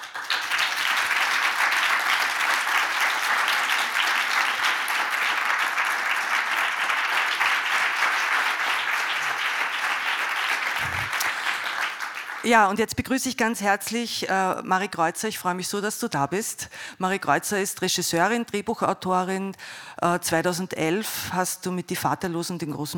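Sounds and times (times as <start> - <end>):
audience applause: 0.0 - 12.5
speech: 12.5 - 22.9.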